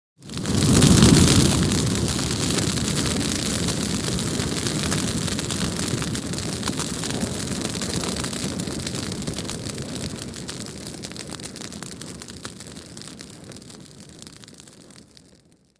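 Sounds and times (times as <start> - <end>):
long fire flame bursts outdoors: 0.3 - 9.7.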